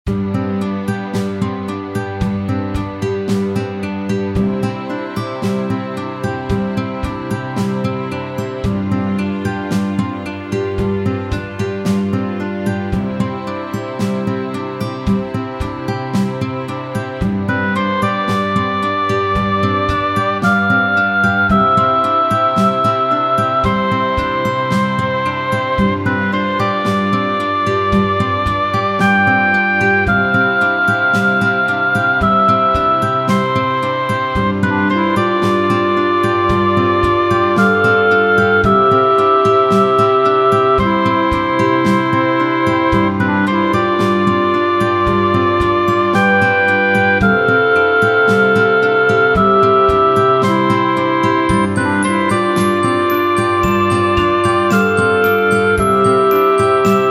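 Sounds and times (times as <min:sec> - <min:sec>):
guitar: 0:00.0 - 0:57.1.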